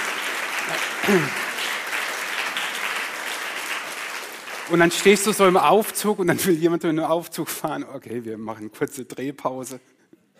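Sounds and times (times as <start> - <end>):
crowd applause: 0.0 - 5.9
speech: 0.7 - 1.5, 4.7 - 10.0.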